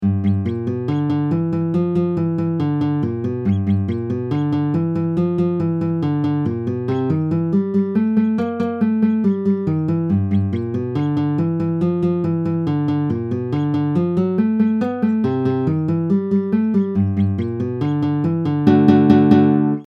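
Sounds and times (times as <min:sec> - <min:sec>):
blues boogie music in G: 0:00.0 - 0:19.8.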